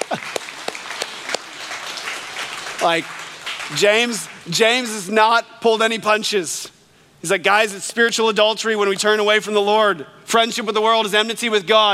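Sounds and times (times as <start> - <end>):
church audience clapping: 0.0 - 5.0
speech: 2.8 - 11.9.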